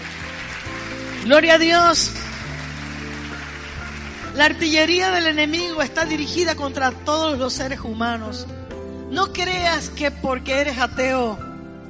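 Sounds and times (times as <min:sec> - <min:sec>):
audience applauding: 0:00.0 - 0:05.3
speech: 0:01.2 - 0:02.2, 0:04.4 - 0:11.5.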